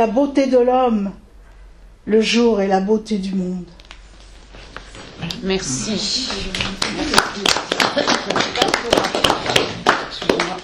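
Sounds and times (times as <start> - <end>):
speech: 0.0 - 1.2, 2.0 - 3.8, 5.2 - 9.6
audience applause: 6.5 - 10.6.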